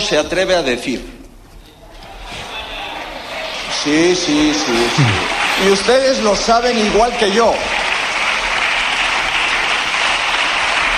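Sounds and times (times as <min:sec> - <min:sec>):
speech: 0:00.1 - 0:01.2, 0:03.8 - 0:07.9
parliament applause: 0:02.3 - 0:10.9.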